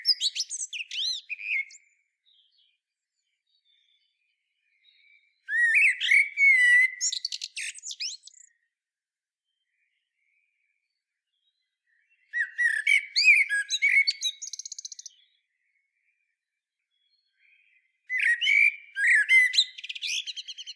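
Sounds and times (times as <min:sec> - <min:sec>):
Common blackbird fluted whistling song: 0:00.0 - 0:02.0, 0:04.9 - 0:08.6, 0:12.3 - 0:15.3, 0:18.1 - 0:20.7.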